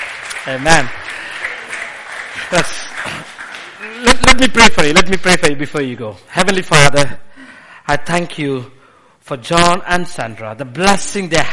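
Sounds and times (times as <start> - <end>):
person speaking over clapping: 0.0 - 5.0
church congregation applauding: 0.0 - 5.2
speech: 0.4 - 1.1, 2.4 - 7.3, 7.9 - 11.5.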